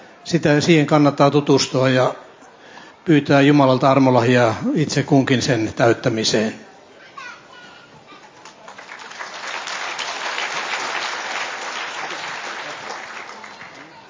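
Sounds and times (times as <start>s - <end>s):
speech: 0.3s - 2.2s, 3.1s - 6.6s
audience applauding: 8.4s - 14.0s.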